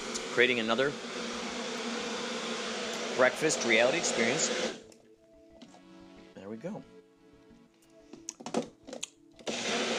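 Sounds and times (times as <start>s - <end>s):
blender motor mixing a peanut butter smoothie: 0.0s - 4.9s, 9.4s - 9.9s
speech: 0.4s - 1.2s, 3.2s - 4.8s, 6.6s - 7.0s.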